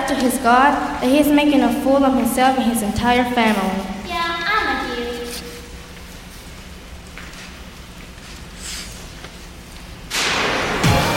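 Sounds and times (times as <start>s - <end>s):
speech: 0.1s - 4.0s
thunder: 10.1s - 11.1s.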